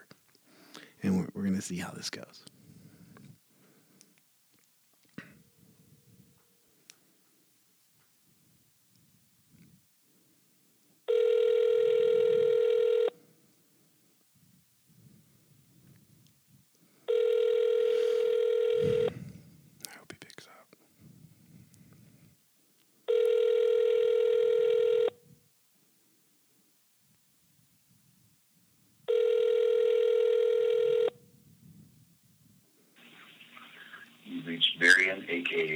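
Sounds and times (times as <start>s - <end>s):
speech: 1.0s - 2.5s
outgoing phone call ringback tone: 11.1s - 13.2s, 17.1s - 19.2s, 23.1s - 25.2s, 29.1s - 31.2s
soft murmuring: 33.0s - 35.7s.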